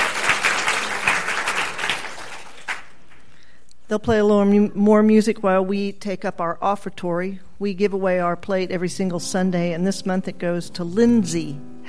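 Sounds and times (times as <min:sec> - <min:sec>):
crowd applause: 0:00.0 - 0:03.2
speech: 0:03.9 - 0:11.8.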